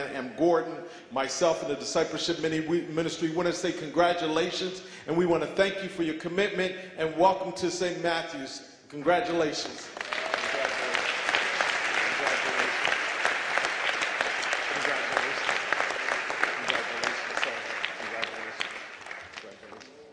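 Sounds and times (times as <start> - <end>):
speech: 0.0 - 10.1
crowd applause: 9.8 - 20.1.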